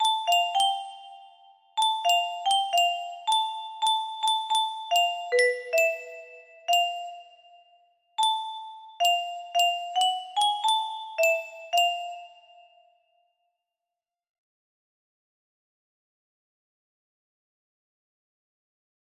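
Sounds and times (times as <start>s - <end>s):
music box melody: 0.0s - 12.9s.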